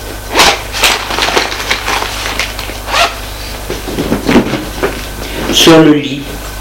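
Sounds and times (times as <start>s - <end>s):
woman unpacking her belongings: 0.3s - 3.2s
speech: 5.5s - 6.4s.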